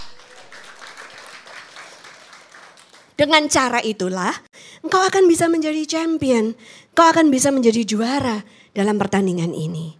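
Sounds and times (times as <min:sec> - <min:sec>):
audience cheering: 0:00.0 - 0:03.0
speech: 0:03.2 - 0:09.9.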